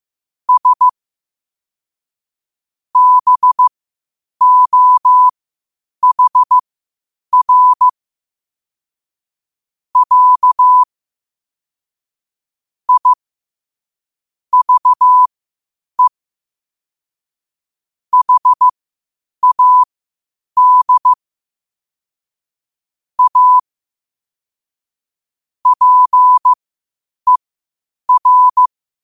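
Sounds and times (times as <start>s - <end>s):
morse code at 5 wpm: 0.5s - 1.0s, 3.0s - 3.7s, 4.4s - 5.3s, 6.0s - 6.6s, 7.3s - 8.0s, 10.0s - 10.9s, 12.9s - 13.2s, 14.5s - 15.3s, 18.1s - 18.7s, 19.4s - 19.9s, 20.6s - 21.2s, 23.2s - 23.6s, 25.6s - 26.6s, 28.1s - 28.7s.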